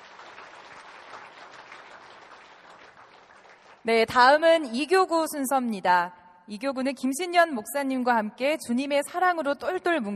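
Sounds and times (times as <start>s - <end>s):
church congregation applauding: 0.0s - 3.9s
speech: 3.8s - 10.1s.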